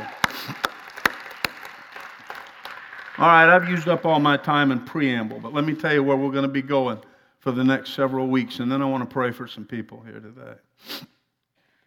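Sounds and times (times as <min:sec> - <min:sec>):
audience clapping hands: 0:00.0 - 0:06.5
speech: 0:03.2 - 0:11.1.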